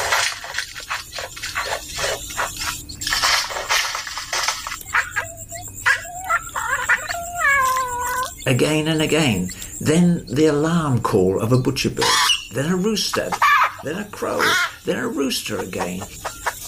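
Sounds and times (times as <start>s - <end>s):
scratchy clattering bursts: 0.0s - 5.1s
bowerbird mimicking a cat's meow: 4.8s - 8.5s
speech: 8.5s - 16.3s.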